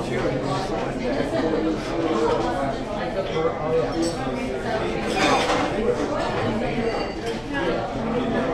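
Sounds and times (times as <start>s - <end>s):
crowd in California: 0.0s - 8.5s.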